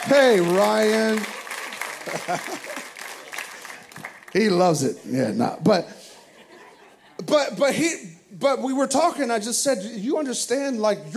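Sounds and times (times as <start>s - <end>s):
speech: 0.0s - 1.4s, 2.1s - 2.9s, 4.4s - 6.0s, 7.2s - 11.1s
audience applause: 0.0s - 4.7s
laughter: 0.3s - 3.8s, 5.0s - 7.9s.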